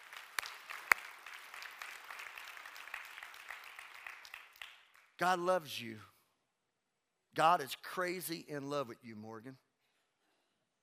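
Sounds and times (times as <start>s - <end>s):
audience clapping: 0.0s - 5.5s
speech: 5.2s - 6.1s, 7.4s - 9.6s.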